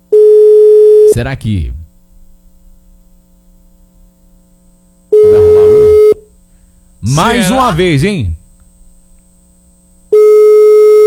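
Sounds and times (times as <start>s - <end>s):
faint hum: 0.0s - 11.0s
speech: 1.2s - 1.8s, 7.0s - 8.4s
telephone busy tone on an unanswered call: 5.2s - 6.2s, 10.2s - 11.0s.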